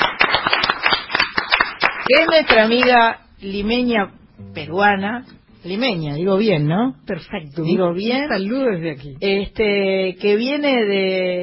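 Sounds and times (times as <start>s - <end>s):
applause: 0.0s - 3.0s
speech: 2.1s - 11.4s.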